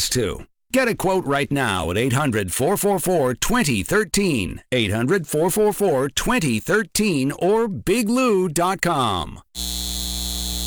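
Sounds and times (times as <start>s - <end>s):
speech: 0.0s - 10.2s
data center electrical drone: 9.6s - 10.6s
thin high whine of a data center: 9.6s - 10.6s.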